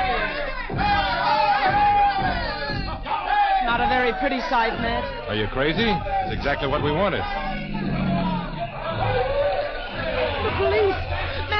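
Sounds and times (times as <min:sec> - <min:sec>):
crowd of students shouting and chanting at demonstration: 0:00.0 - 0:11.5
speech: 0:04.1 - 0:07.6
sustained high cries: 0:04.8 - 0:11.5.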